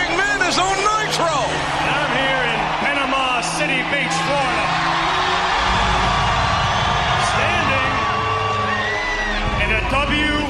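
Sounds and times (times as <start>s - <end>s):
wrestling crowd cheering: 0.0s - 10.4s.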